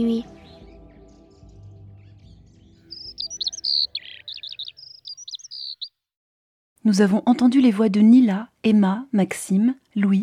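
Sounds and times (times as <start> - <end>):
speech: 0.0 - 0.4, 6.8 - 10.2
small birds chirping: 1.6 - 5.9.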